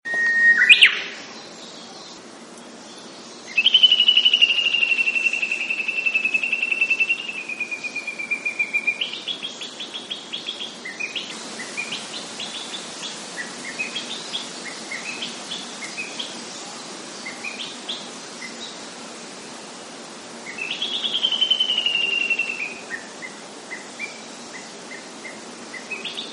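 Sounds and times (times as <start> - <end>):
uguisu: 0.1 - 26.3.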